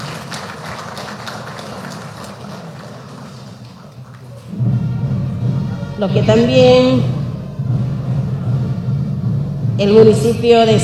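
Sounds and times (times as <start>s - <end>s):
audience applause: 0.0s - 4.5s
deeper rumble: 4.5s - 10.8s
speech: 6.0s - 7.1s, 9.8s - 10.8s.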